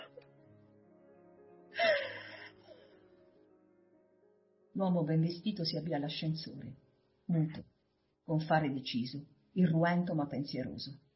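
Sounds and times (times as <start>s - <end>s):
woman lying on a bed crying, muffling her moans in a pillow: 1.8s - 2.6s
speech: 4.8s - 7.7s, 8.3s - 11.0s.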